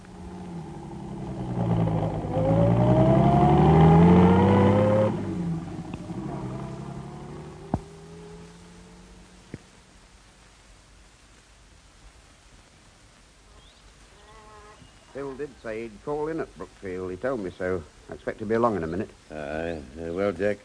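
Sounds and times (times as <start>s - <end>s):
car engine revving and pulling away: 0.0s - 9.6s
speech: 15.2s - 20.6s.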